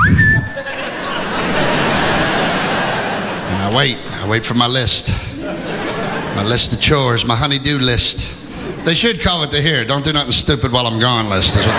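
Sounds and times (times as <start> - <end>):
Navy whistle being blown: 0.0 - 0.6
crowd laughter: 0.2 - 10.0, 11.0 - 11.7
speech: 3.7 - 5.3, 6.4 - 11.7.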